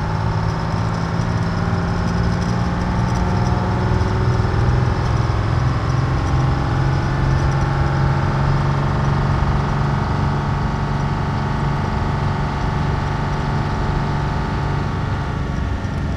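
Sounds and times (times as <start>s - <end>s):
1948 diesel truck starting, pulling away, stopping and idling, heard from interior: 0.0s - 16.1s.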